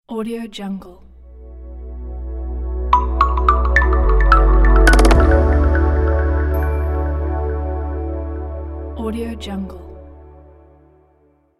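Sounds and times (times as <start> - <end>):
inspiring logo jingle: 1.3 - 8.9.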